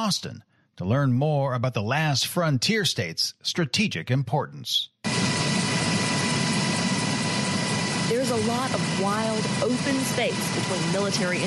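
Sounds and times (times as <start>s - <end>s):
speech: 0.0s - 4.9s, 8.1s - 11.4s
helicopter flying over Alaska: 5.0s - 11.4s.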